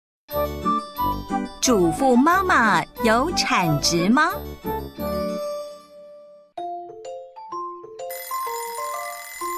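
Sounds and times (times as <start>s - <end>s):
speech: 1.6s - 5.5s
alarm clock ringing with a tinkling melody: 8.0s - 9.5s.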